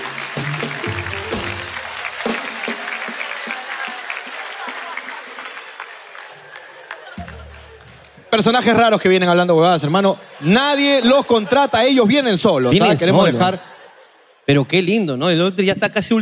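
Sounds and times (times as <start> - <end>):
audience applause: 0.0 - 8.8
speech: 8.4 - 13.7, 14.5 - 16.1.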